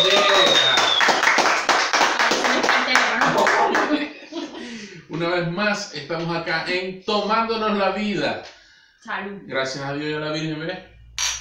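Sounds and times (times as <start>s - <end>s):
small group clapping hands: 0.0s - 4.1s
laughter: 3.2s - 4.9s
speech: 5.4s - 10.9s.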